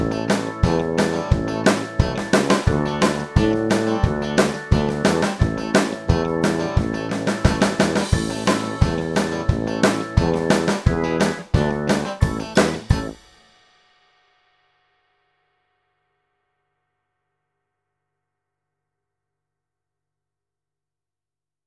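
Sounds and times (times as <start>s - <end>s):
karaoke singing: 0.0s - 13.2s.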